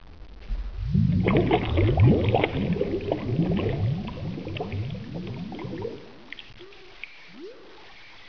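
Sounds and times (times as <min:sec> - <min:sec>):
bubbling blub: 0:00.5 - 0:07.9.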